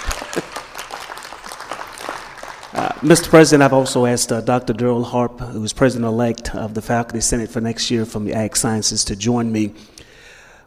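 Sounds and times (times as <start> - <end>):
thundering audience applause: 0.0 - 3.6
speech: 2.8 - 10.0.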